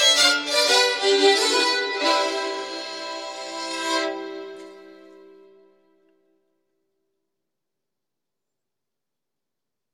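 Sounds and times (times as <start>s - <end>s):
Swedish bagpipe playing a polska: 0.0s - 5.8s.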